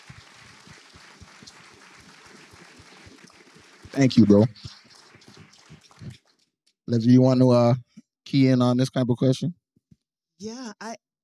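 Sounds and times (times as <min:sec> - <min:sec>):
audience clapping: 0:00.0 - 0:07.0
speech: 0:04.0 - 0:04.8, 0:06.9 - 0:09.6, 0:10.4 - 0:11.0.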